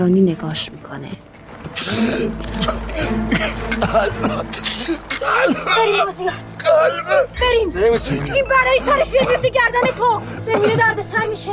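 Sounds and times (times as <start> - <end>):
speech: 0.0 - 11.5
man coughing in pain: 2.6 - 11.0.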